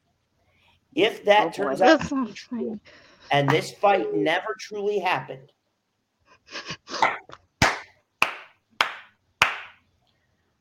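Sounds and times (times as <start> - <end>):
speech: 1.0 - 5.6, 6.5 - 7.2
hands clapping: 3.5 - 3.7, 6.9 - 9.8.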